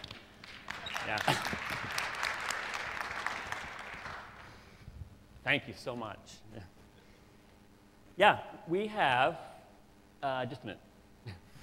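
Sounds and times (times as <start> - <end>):
audience applause: 0.0 - 4.6
speech: 1.1 - 1.6, 5.5 - 6.7, 8.2 - 9.5, 10.2 - 11.4.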